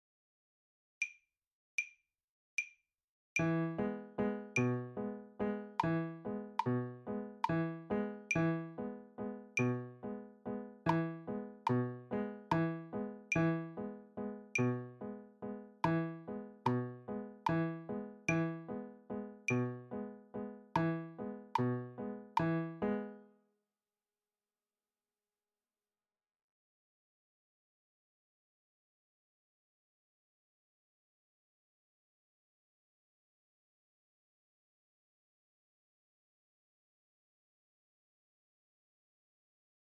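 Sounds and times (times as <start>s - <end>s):
slow piano: 3.4s - 23.3s.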